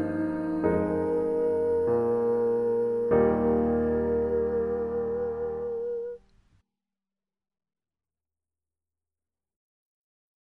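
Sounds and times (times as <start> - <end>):
soprano singing: 0.0 - 6.2.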